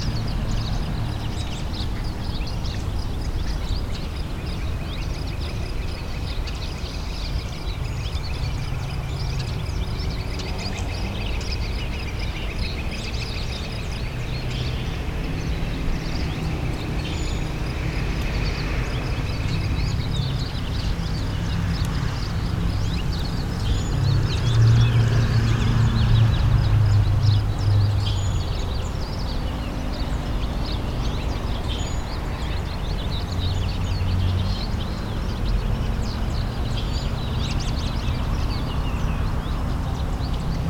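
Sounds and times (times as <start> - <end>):
binaural outdoor ambience: 0.0 - 40.6.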